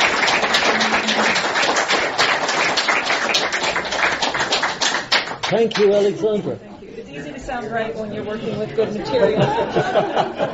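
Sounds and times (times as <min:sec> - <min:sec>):
crowd applauding: 0:00.0 - 0:06.0
speech: 0:05.5 - 0:10.5
laughter: 0:08.8 - 0:10.5.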